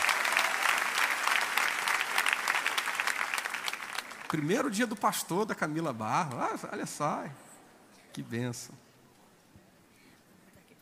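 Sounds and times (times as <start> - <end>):
audience applause: 0.0 - 5.3
speech: 4.3 - 7.4, 8.2 - 8.8.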